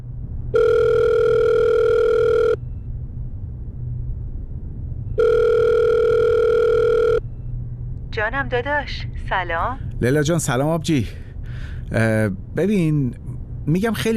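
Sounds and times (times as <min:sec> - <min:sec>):
telephone ringing tone: 0:00.5 - 0:02.6, 0:05.2 - 0:07.2
speech: 0:08.2 - 0:14.1.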